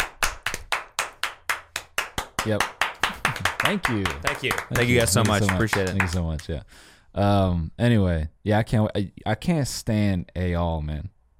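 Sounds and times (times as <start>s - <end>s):
audience clapping: 0.0s - 6.5s
speech: 2.4s - 2.8s, 3.6s - 11.2s.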